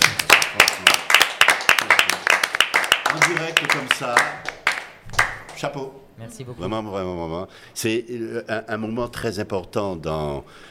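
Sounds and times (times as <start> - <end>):
applause after a live performance: 0.0 - 5.6
speech: 3.2 - 4.6, 5.6 - 10.7.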